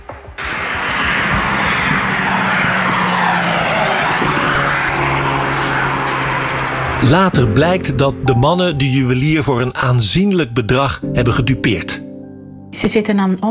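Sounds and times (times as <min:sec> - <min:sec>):
Volkswagen Golf getaway car engine roaring on a ring road: 0:00.0 - 0:10.6
speech: 0:07.0 - 0:12.0, 0:12.7 - 0:13.4.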